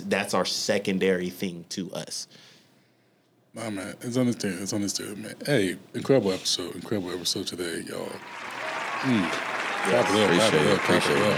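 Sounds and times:
speech: 0.1s - 2.5s, 3.6s - 11.3s
applause: 8.2s - 11.3s.

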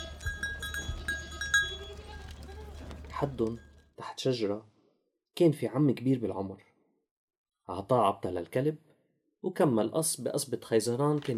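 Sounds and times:
herd of goats bleating: 0.0s - 3.2s
speech: 3.2s - 4.8s, 5.4s - 6.7s, 7.7s - 11.3s.

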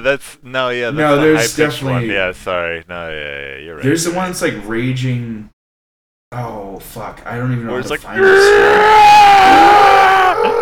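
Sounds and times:
speech: 0.0s - 5.6s, 6.3s - 9.9s
stock escalating scream sound effect: 8.2s - 10.5s.

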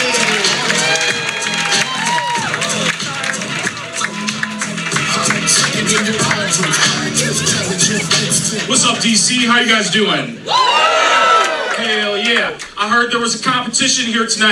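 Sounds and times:
audience applause: 0.0s - 8.0s, 10.5s - 12.8s
audience cheering: 0.0s - 13.0s
speech: 9.2s - 10.7s, 12.5s - 14.4s.

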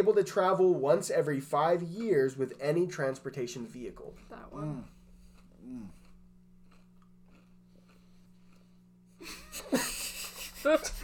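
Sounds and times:
speech: 0.0s - 5.0s, 5.6s - 6.0s, 10.6s - 11.0s
crunching on a Nature Valley granola bar: 5.3s - 8.6s.

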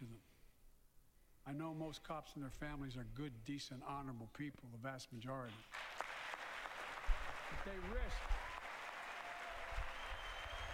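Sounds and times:
speech: 1.5s - 5.8s, 7.6s - 8.4s
audience applause: 5.7s - 10.7s.

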